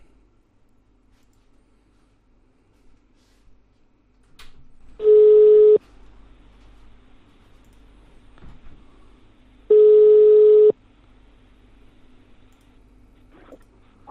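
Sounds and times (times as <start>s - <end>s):
telephone ringing tones after redialing: 5.0s - 5.8s, 9.7s - 10.8s.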